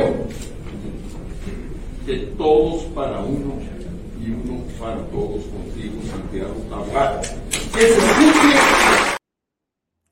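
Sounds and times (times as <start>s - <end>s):
speech: 2.1s - 9.0s
crowd applause: 7.7s - 9.2s.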